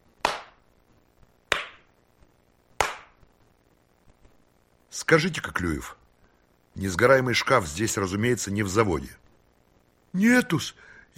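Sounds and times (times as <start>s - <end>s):
hands clapping: 0.2s - 0.6s, 1.5s - 1.9s, 2.8s - 3.2s
speech: 5.0s - 6.0s, 6.8s - 9.2s, 10.1s - 11.1s.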